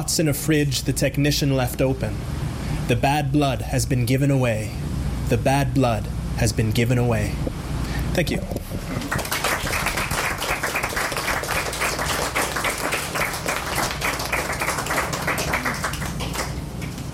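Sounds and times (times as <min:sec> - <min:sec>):
speech: 0:00.0 - 0:07.5, 0:08.2 - 0:09.1
audience applause after a poetry reading: 0:08.9 - 0:17.0.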